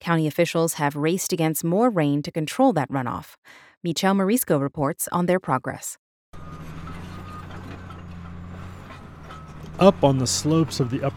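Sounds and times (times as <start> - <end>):
speech: 0.0 - 6.0, 9.8 - 11.1
Caterpillar D9 earth mover working: 6.4 - 11.1
earth mover reversing beeps: 6.4 - 11.1.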